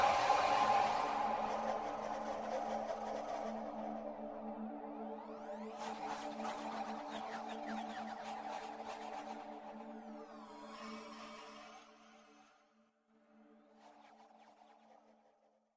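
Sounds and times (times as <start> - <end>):
ambient music: 0.0 - 12.1.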